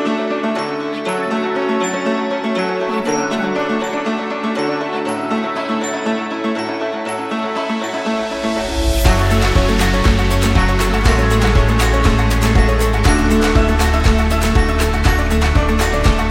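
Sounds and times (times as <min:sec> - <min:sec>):
ambient indie acoustic music: 0:00.0 - 0:16.2.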